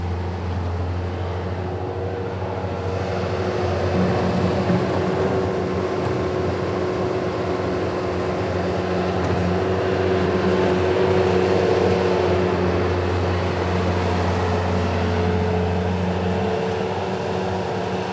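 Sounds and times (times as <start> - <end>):
Bobcat loader moving and dumping dirt: 0.0 - 18.1.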